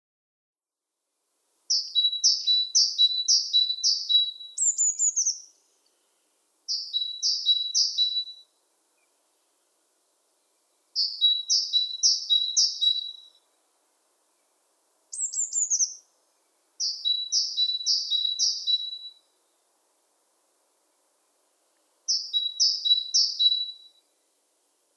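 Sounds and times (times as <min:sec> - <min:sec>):
great tit singing two-note song: 0:01.7 - 0:06.0, 0:06.7 - 0:08.4, 0:11.0 - 0:13.4, 0:14.4 - 0:19.1, 0:22.1 - 0:23.9.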